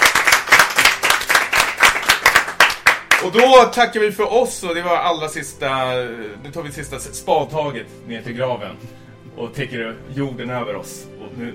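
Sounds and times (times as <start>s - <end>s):
small group applause: 0.0s - 3.7s
speech: 3.2s - 11.5s.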